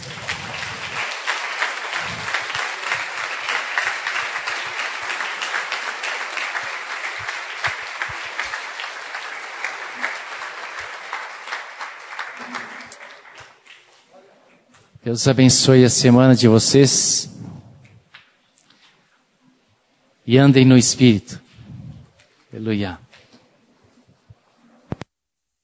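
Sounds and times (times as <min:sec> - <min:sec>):
crowd applause: 0:00.0 - 0:14.1
speech: 0:15.1 - 0:17.3, 0:20.3 - 0:21.4, 0:22.6 - 0:23.0.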